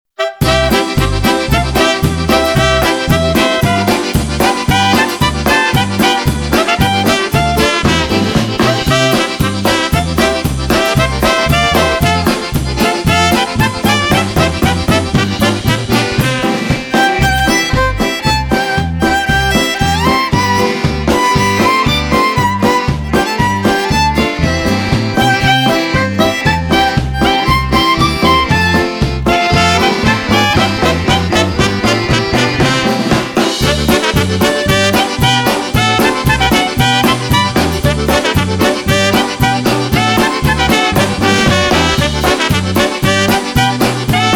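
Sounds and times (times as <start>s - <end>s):
polka music: 0.1s - 44.3s.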